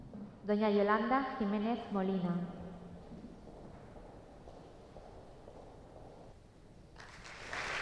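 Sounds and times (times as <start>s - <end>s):
speech: 0.5s - 2.6s
applause for an award recipient: 6.9s - 7.7s.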